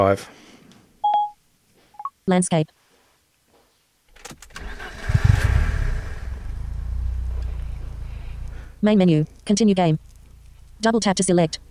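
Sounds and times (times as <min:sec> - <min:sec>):
speech: 0:00.0 - 0:00.4, 0:02.3 - 0:02.8, 0:08.8 - 0:10.1, 0:10.8 - 0:11.6
car engine starting up in a game: 0:04.1 - 0:08.8.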